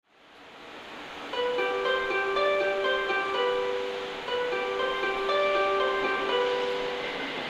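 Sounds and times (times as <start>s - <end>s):
melody: 1.3s - 7.4s.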